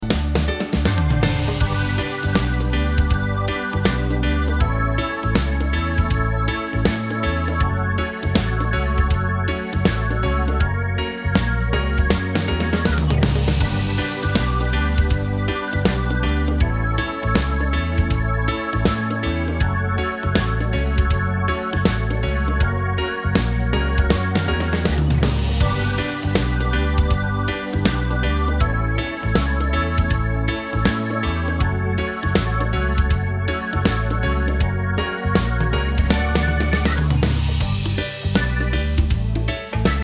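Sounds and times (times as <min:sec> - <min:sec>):
reggae music: 0:00.0 - 0:40.0.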